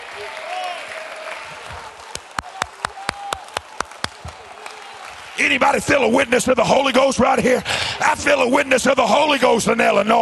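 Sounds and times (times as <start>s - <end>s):
audience clapping hands: 0.0s - 6.3s
speech: 5.4s - 10.1s.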